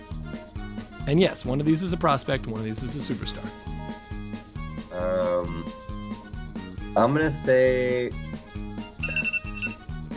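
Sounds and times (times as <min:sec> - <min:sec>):
speech: 0:01.0 - 0:04.0, 0:07.0 - 0:08.3
sustained high beep: 0:09.0 - 0:09.8
timer alarm playing a bright repeating electronic ringtone: 0:09.0 - 0:09.8.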